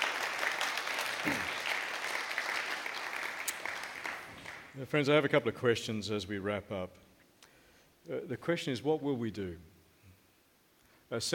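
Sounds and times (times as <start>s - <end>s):
room full of people applauding: 0.0s - 4.8s
speech: 4.8s - 7.1s, 8.0s - 9.7s, 11.1s - 11.3s.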